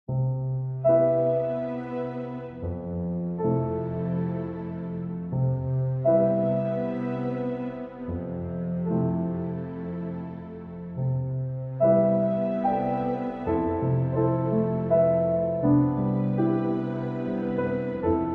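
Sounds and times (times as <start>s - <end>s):
strings: 0.7s - 18.3s.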